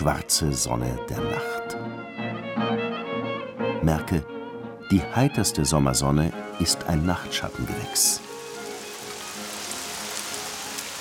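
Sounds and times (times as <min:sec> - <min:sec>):
speech: 0:00.0 - 0:02.4, 0:03.8 - 0:08.3
summer rain rustling on bushes and trees: 0:06.6 - 0:11.0.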